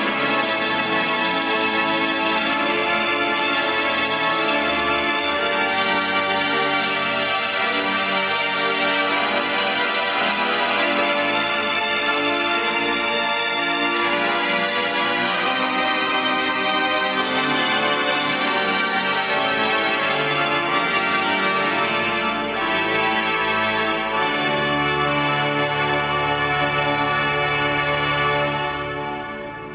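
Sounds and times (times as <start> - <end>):
organ: 0.0 - 29.7.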